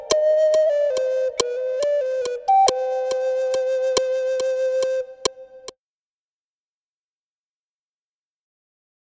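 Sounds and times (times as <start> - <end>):
flute melody: 0.0 - 5.7.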